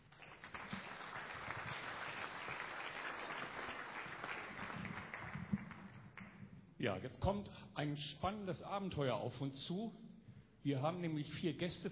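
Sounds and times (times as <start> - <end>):
audience applause: 0.0 - 5.9
speech: 6.8 - 10.0, 10.6 - 11.9.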